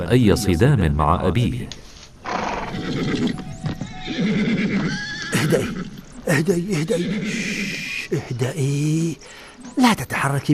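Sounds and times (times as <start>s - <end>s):
speech: 0.0s - 1.9s, 2.9s - 3.5s, 5.5s - 10.5s
horses neighing and whinnying in a stable: 2.2s - 9.2s.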